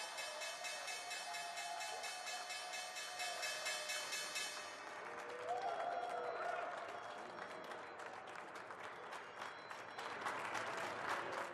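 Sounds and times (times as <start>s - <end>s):
stock exchange opening bell ringing: 0.0s - 4.7s
crowd applause: 0.0s - 11.5s.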